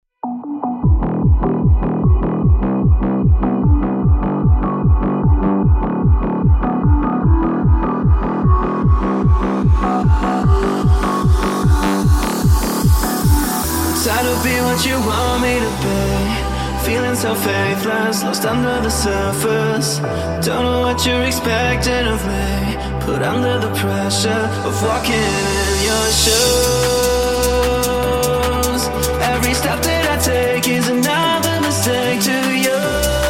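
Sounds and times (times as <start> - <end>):
techno music: 0.2 - 33.2.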